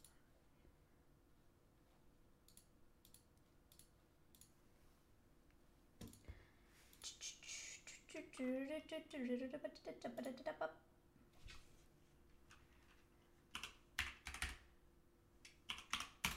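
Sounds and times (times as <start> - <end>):
person speaking: 6.9 - 10.8
typing on a computer keyboard: 13.5 - 14.7, 15.5 - 16.3.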